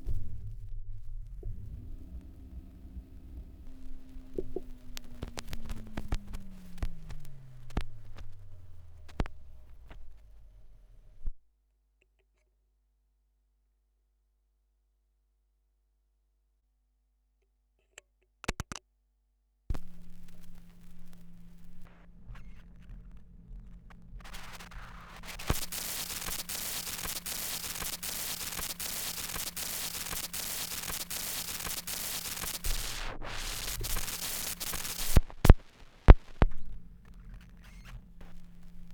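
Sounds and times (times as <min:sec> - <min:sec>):
78 rpm gramophone record surface noise: 0:00.0 - 0:11.4, 0:19.7 - 0:38.9.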